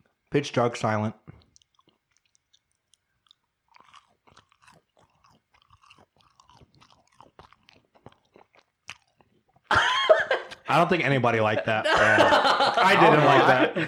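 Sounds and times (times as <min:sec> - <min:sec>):
speech: 0:00.3 - 0:01.2, 0:10.7 - 0:13.8
biting and chewing food in pitch darkness: 0:01.2 - 0:09.7
laughter: 0:09.7 - 0:10.7, 0:11.4 - 0:13.8.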